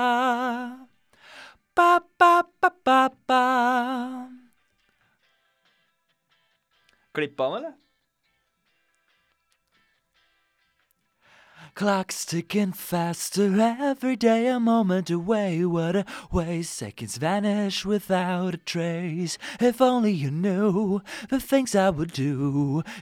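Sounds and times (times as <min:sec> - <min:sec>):
vocals: 0:00.0 - 0:04.6, 0:11.4 - 0:23.0.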